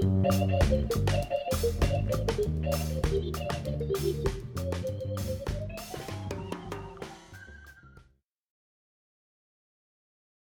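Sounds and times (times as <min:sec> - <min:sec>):
jazz quartet playing: 0:00.0 - 0:07.3.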